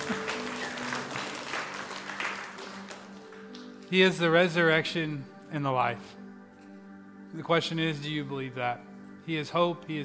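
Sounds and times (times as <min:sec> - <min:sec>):
audience clapping: 0:00.0 - 0:04.0
speech: 0:03.9 - 0:06.2, 0:07.3 - 0:10.0.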